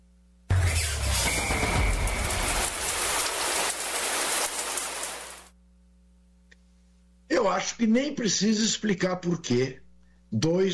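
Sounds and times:
shower running water: 0:01.4 - 0:05.5
speech: 0:07.4 - 0:10.7.

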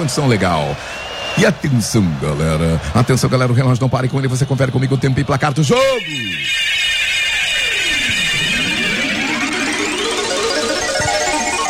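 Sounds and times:
speech: 0:00.0 - 0:06.8
electronic radio station chime: 0:05.8 - 0:11.6.

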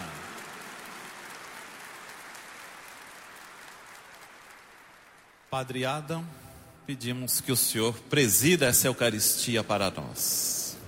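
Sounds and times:
audience applause: 0:00.0 - 0:05.5
speech: 0:05.5 - 0:10.7.

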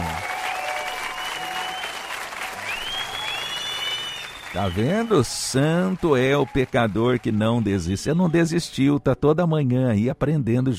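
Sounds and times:
crowd applause: 0:00.0 - 0:08.2
speech: 0:04.5 - 0:10.7.

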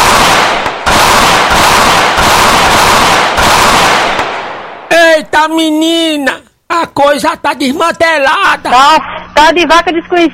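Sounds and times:
burst of gunfire sound effect: 0:00.0 - 0:04.9
speech: 0:05.4 - 0:10.3.

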